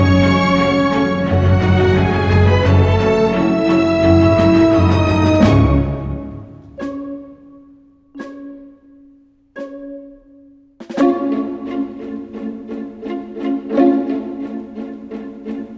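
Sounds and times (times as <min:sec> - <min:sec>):
orchestra: 0:00.0 - 0:07.5, 0:10.8 - 0:15.7.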